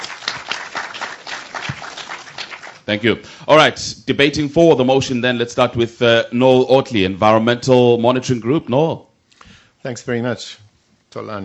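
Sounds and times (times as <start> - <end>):
audience clapping for a professor at a debate: 0.0 - 3.0
speech: 2.9 - 9.1, 9.8 - 11.4.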